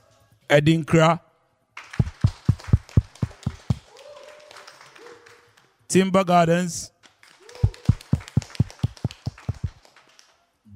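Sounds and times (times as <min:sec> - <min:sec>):
speech: 0:00.5 - 0:01.2, 0:05.9 - 0:07.0
audience clapping: 0:01.8 - 0:05.8, 0:07.0 - 0:10.4.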